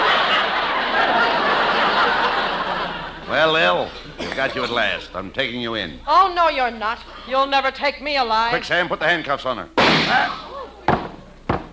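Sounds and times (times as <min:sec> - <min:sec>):
laughter: 0:00.0 - 0:05.3
speech: 0:03.4 - 0:10.4
sharp gunshots: 0:09.8 - 0:10.4.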